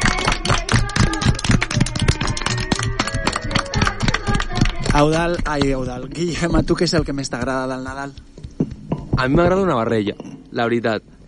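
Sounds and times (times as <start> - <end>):
hand claps: 0.0 - 6.0
speech: 5.0 - 8.3, 9.2 - 11.1.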